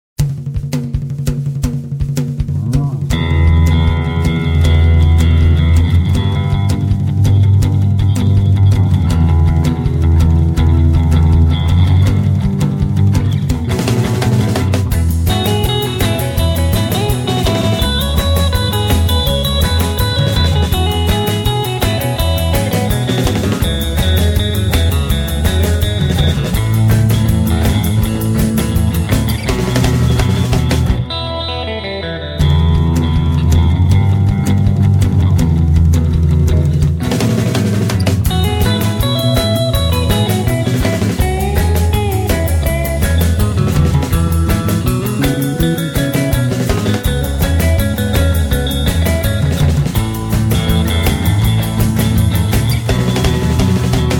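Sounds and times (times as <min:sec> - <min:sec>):
driving guitars: 0:00.2 - 0:54.1.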